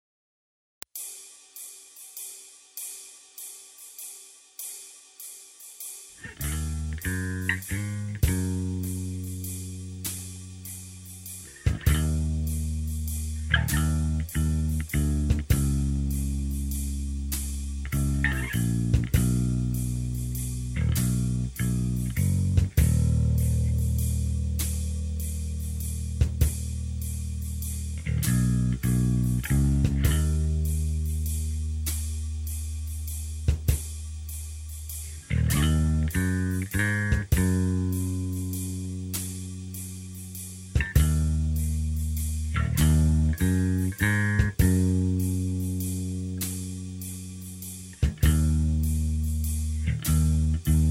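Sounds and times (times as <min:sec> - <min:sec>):
electric bass: 0:06.2 - 0:50.8.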